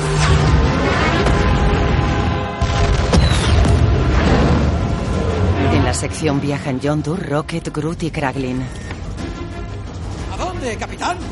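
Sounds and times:
spaceship explosion in a science-fiction action film: 0:00.4 - 0:06.8
speech: 0:06.0 - 0:08.9, 0:10.6 - 0:11.3.

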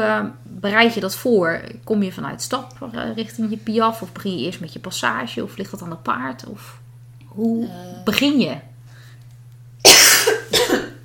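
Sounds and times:
speech: 0:00.0 - 0:06.8, 0:07.4 - 0:08.7
cough: 0:09.8 - 0:11.0.

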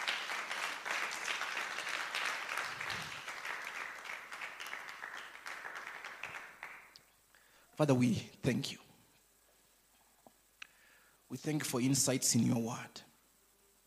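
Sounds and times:
audience clapping: 0:00.0 - 0:07.1
speech: 0:07.8 - 0:08.8, 0:11.4 - 0:13.1.

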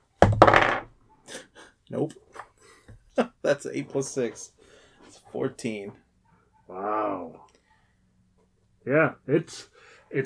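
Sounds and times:
dice rolling on a hard surface: 0:00.2 - 0:00.9
speech: 0:01.9 - 0:02.3, 0:03.2 - 0:04.6, 0:05.3 - 0:06.0, 0:06.7 - 0:07.5, 0:08.8 - 0:10.2.

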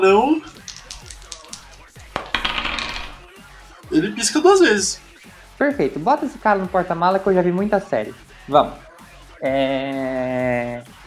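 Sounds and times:
die tumbling across a hard surface: 0:00.6 - 0:03.2
speech: 0:04.0 - 0:05.0, 0:05.6 - 0:10.9.

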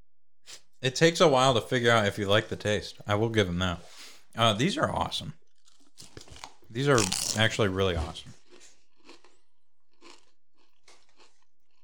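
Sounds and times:
speech: 0:00.8 - 0:05.4, 0:06.7 - 0:08.4
spicy Cinco de Mayo flavor Pringles chips crunching as bitten and chewed: 0:05.5 - 0:11.8.

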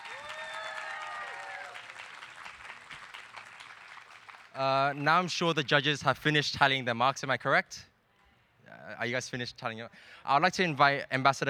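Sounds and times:
audience applause: 0:00.0 - 0:05.0
speech: 0:04.6 - 0:07.9, 0:09.0 - 0:11.4.

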